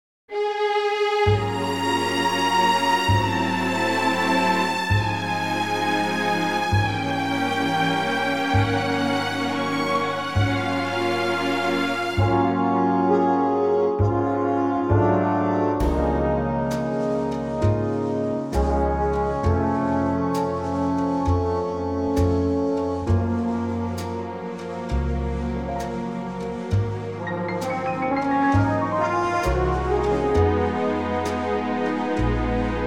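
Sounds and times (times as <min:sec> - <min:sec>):
orchestra: 0:00.3 - 0:32.8.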